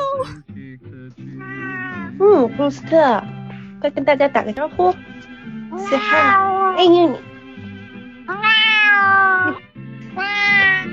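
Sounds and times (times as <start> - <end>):
cat meowing: 1.4 - 2.2, 5.8 - 6.8, 8.3 - 10.9
speech: 2.2 - 5.1, 5.8 - 7.3.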